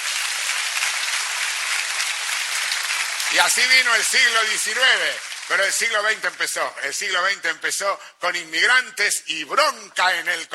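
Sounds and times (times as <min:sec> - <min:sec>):
applause: 0:00.0 - 0:07.0
speech: 0:03.3 - 0:10.5.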